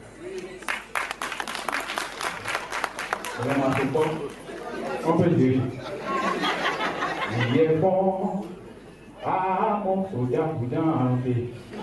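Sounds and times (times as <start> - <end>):
audience applause: 0.4 - 4.7
laughter: 2.5 - 8.0
speech: 3.4 - 4.4, 5.0 - 5.9, 7.4 - 8.5, 9.2 - 11.7.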